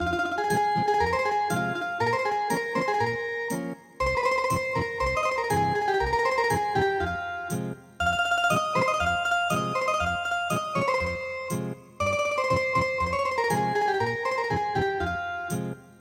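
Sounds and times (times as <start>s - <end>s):
traditional ethnic guitar music: 0.0s - 16.0s.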